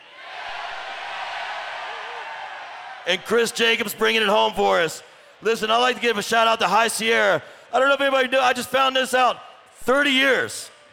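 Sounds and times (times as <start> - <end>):
crowd yelling together: 0.0 - 3.7
speech: 3.1 - 10.7.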